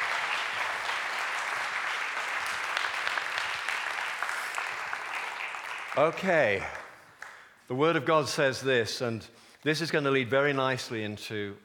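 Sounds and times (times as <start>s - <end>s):
audience applause: 0.0s - 7.4s
speech: 6.0s - 6.8s, 7.7s - 11.6s.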